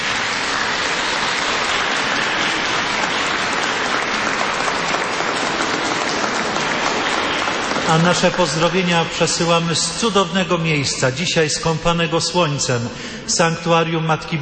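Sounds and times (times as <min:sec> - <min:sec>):
audience applause: 0:00.0 - 0:10.2
speech: 0:07.9 - 0:14.3.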